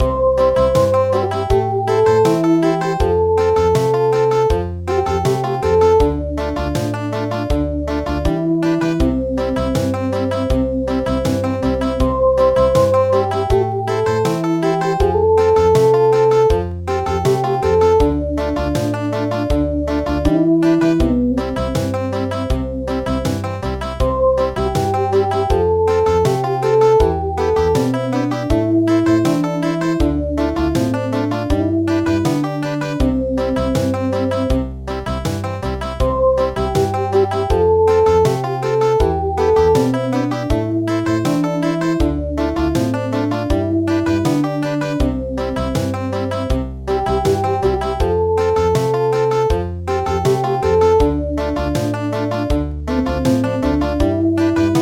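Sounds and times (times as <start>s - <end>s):
country music: 0.0s - 54.7s.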